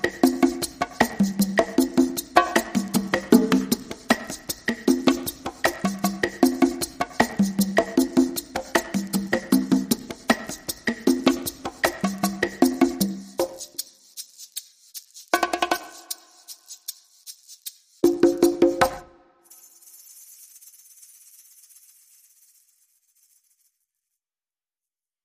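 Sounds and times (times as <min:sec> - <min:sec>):
drums: 0:00.0 - 0:13.8, 0:15.2 - 0:16.3, 0:18.0 - 0:19.1.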